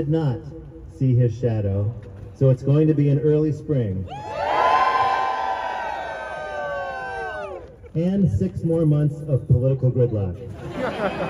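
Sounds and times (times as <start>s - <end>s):
speech: 0.0s - 4.4s, 7.9s - 11.2s
crowd cheering: 4.1s - 7.8s
laughter: 10.4s - 11.2s.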